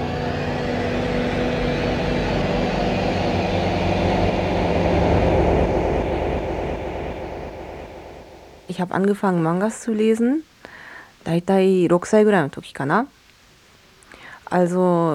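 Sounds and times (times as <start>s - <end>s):
train departing: 0.0s - 10.0s
speech: 8.7s - 10.5s, 11.2s - 13.2s, 14.5s - 15.1s.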